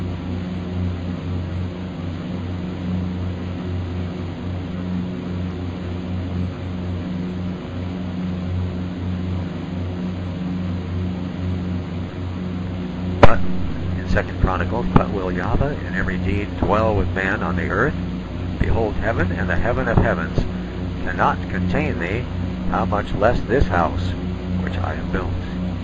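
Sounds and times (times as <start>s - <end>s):
droning of engines: 0.0s - 25.8s
speech: 14.2s - 25.4s.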